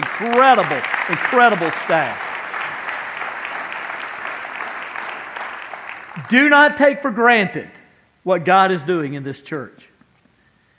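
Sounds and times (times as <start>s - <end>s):
audience applauding: 0.0s - 6.6s
speech: 0.2s - 2.3s, 6.2s - 9.9s.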